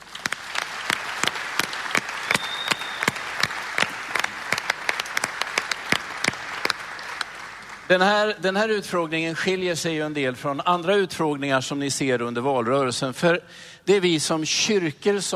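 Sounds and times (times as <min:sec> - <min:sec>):
audience applause: 0:00.0 - 0:08.1
speech: 0:07.9 - 0:15.3.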